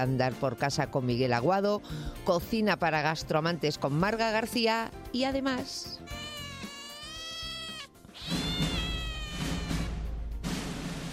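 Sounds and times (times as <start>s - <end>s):
speech: 0.0s - 6.2s
kitten meowing: 6.0s - 10.0s.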